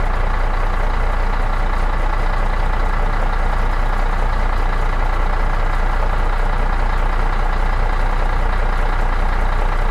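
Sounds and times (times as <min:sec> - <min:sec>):
engine: 0:00.0 - 0:09.8.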